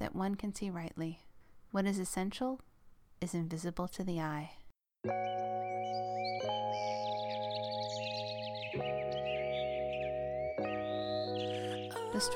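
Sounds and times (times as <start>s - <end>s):
speech: 0.2s - 6.5s
birds singing at dawn: 5.1s - 12.3s.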